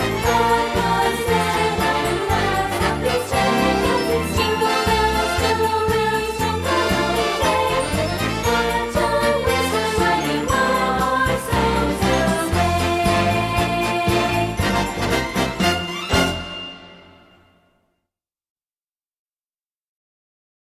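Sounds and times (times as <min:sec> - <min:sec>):
children's choral song: 0:00.0 - 0:15.3
christmas song: 0:00.0 - 0:17.9.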